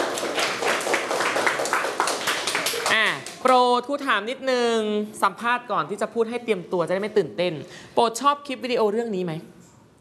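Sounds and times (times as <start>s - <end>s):
audience clapping: 0.0s - 3.5s
speech: 3.4s - 9.6s.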